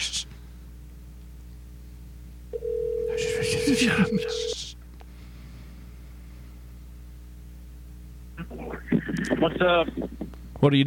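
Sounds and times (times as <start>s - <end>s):
phone call ringing tone: 2.6s - 4.6s
speech: 3.7s - 4.6s, 9.6s - 10.8s.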